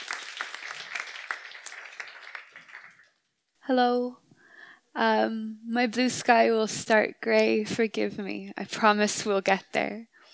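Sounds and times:
audience applause: 0.0s - 3.2s
speech: 3.7s - 4.2s, 5.0s - 10.1s.

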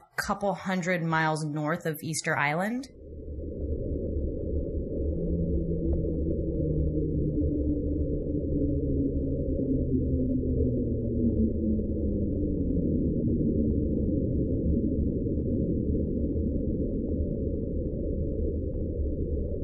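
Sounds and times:
Slowdown sound in hydrophone recording, long tones gliding downward: 0.0s - 19.6s
steady dense low rumble of ocean noise: 0.0s - 19.6s
speech: 0.3s - 3.0s.

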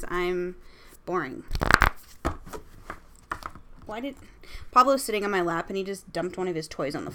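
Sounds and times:
speech: 0.1s - 1.8s, 3.9s - 7.1s
Spellcasting Oracle deck cards being shuffled for a card pull: 1.5s - 3.6s.

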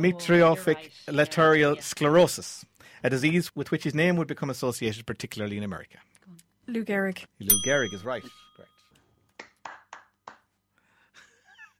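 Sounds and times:
speech: 0.0s - 8.7s
slow patronising clapping: 9.3s - 10.6s.

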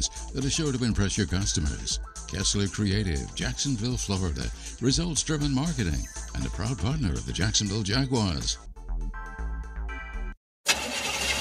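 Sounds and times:
speech: 0.0s - 9.2s
car engine cranking without catching: 10.7s - 11.3s.

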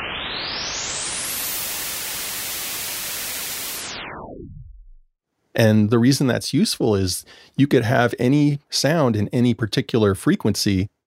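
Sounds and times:
white noise: 0.0s - 4.0s
speech: 5.6s - 11.0s.

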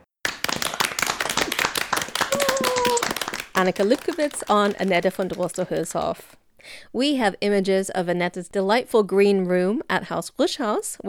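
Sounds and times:
group applause: 0.2s - 6.3s
speech: 3.6s - 11.0s.

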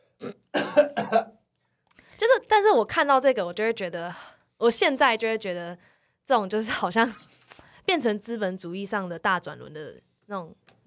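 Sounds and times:
person coughing: 0.2s - 1.4s
speech: 2.7s - 7.3s, 7.9s - 10.8s.

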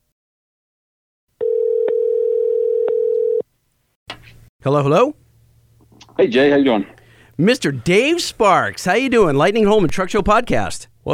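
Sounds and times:
telephone dial tone while calling: 1.4s - 3.4s
speech: 4.6s - 5.2s, 6.2s - 11.1s.

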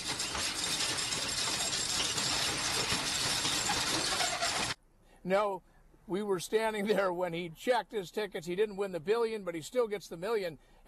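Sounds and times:
metal roll-up store door being raised: 0.0s - 4.8s
speech: 5.2s - 10.8s.

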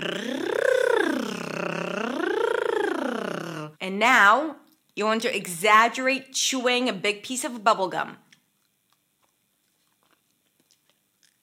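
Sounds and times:
tongue trill vocal exercise: 0.0s - 3.8s
speech: 3.9s - 8.2s.

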